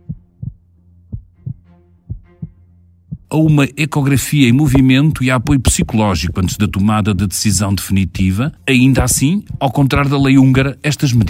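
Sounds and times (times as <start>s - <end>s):
fetal heartbeat: 0.0s - 3.6s
speech: 3.3s - 11.2s.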